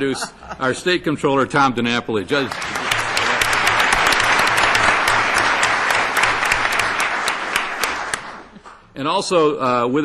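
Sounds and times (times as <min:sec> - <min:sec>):
speech: 0:00.0 - 0:02.8, 0:09.0 - 0:10.0
audience applause after an introduction: 0:02.3 - 0:08.7.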